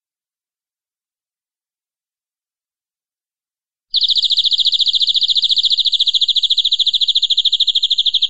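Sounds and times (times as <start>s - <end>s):
canary singing long-duration rolling trill: 3.9s - 8.2s.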